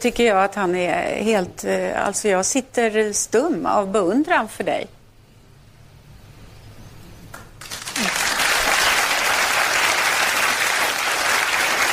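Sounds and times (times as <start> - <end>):
speech: 0.0 - 5.0
crowd applause: 7.6 - 11.9.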